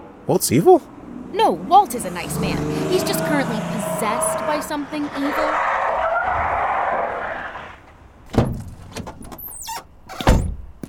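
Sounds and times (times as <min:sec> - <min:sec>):
car engine roar pulling up: 0:00.0 - 0:08.2
speech: 0:00.3 - 0:05.8
car tire squeal skidding to a stop: 0:01.7 - 0:07.9.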